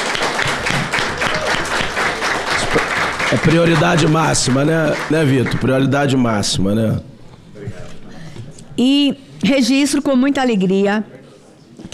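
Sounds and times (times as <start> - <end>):
audience applause: 0.0 - 6.3
speech: 2.8 - 7.1, 8.8 - 11.2.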